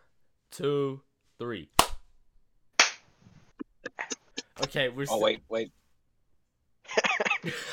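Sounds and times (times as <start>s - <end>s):
speech: 0.6s - 1.8s, 4.6s - 5.8s, 6.9s - 7.7s
single group hand clap: 1.8s - 2.0s.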